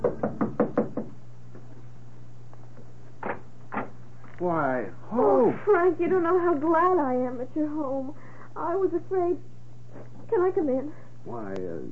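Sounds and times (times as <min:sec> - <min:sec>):
knocking on a door: 0:00.0 - 0:01.2
speech: 0:04.4 - 0:09.5, 0:10.3 - 0:11.9.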